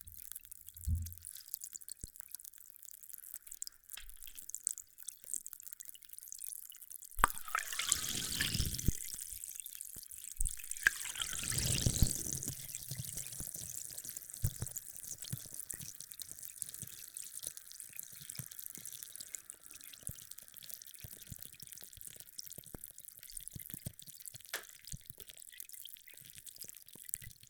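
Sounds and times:
carbonated drink fizzing: 7.2 - 9.6, 10.3 - 20.3.

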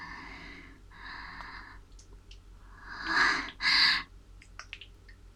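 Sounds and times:
ear licking: 1.4 - 5.2.

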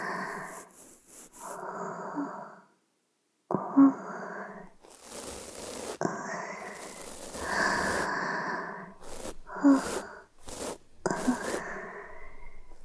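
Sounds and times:
ear cleaning sound effects: 0.0 - 1.6, 4.7 - 12.8
breathing: 0.0 - 2.8, 3.6 - 12.8.

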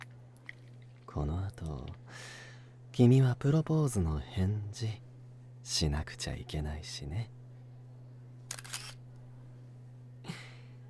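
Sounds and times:
speech: 1.2 - 2.4, 3.0 - 5.0, 5.6 - 7.4
camera shutter clicks taking a commemorative photo: 8.5 - 9.2.

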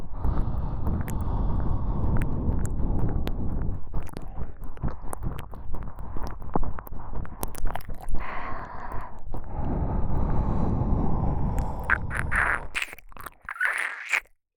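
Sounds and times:
breathing: 0.0 - 14.2
ear licking: 0.8 - 9.5, 11.5 - 14.3.

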